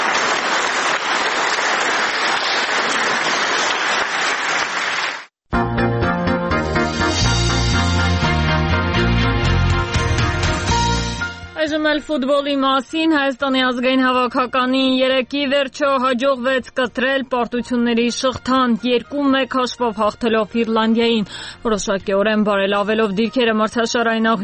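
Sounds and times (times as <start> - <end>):
enthusiastic applause after a speech: 0.0 - 5.4
music with steady tones and rhythm: 5.5 - 11.6
speech: 12.0 - 24.4.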